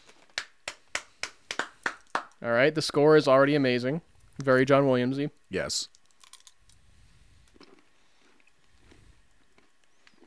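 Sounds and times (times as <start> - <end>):
sharp hand claps: 0.2 - 2.4
speech: 2.4 - 6.0.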